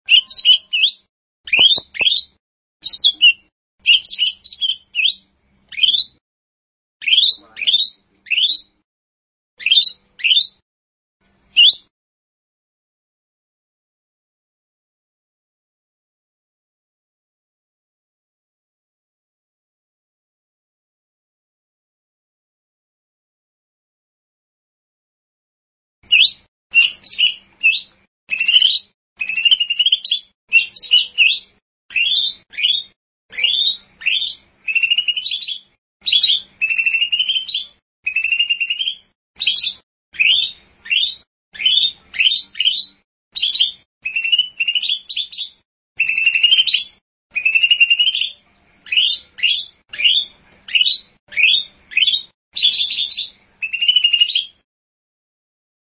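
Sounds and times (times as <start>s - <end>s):
bird song: 0.1s - 6.2s, 7.0s - 8.8s, 9.6s - 10.6s, 11.2s - 11.9s, 26.0s - 54.6s.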